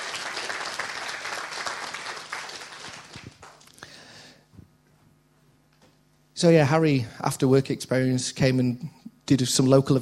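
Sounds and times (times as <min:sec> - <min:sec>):
group clapping: 0:00.0 - 0:03.8
speech: 0:06.4 - 0:10.0.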